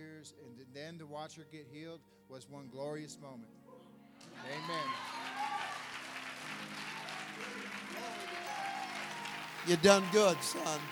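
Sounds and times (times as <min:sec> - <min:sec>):
speech: 0:00.2 - 0:03.6, 0:04.4 - 0:05.2, 0:09.6 - 0:10.9
audience clapping: 0:04.2 - 0:10.9.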